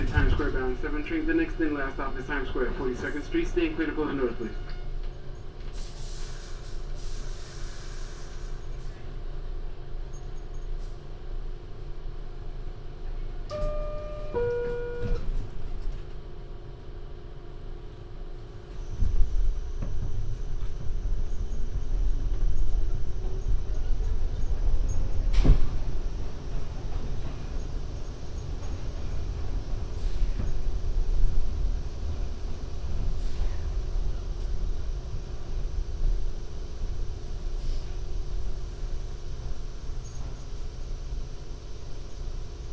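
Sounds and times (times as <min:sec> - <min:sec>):
voices: 0:00.0 - 0:04.6
MTA train rumble: 0:00.0 - 0:42.7
short rising electronic chime: 0:13.5 - 0:15.3.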